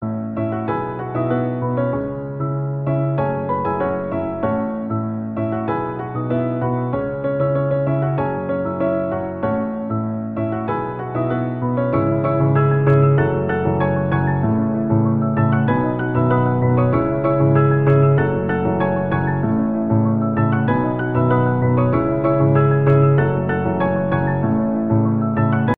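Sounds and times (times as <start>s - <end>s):
piano: 0.0s - 25.7s.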